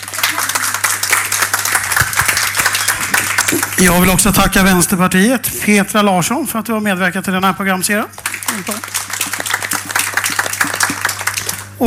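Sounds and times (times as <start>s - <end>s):
crowd applause: 0.0s - 4.9s, 8.1s - 11.8s
low steady hum: 0.0s - 11.8s
speech: 3.8s - 9.1s.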